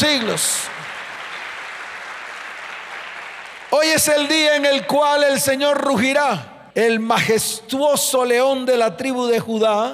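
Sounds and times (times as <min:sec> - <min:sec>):
speech: 0:00.0 - 0:00.8, 0:03.7 - 0:09.9
audience applause: 0:00.0 - 0:04.3.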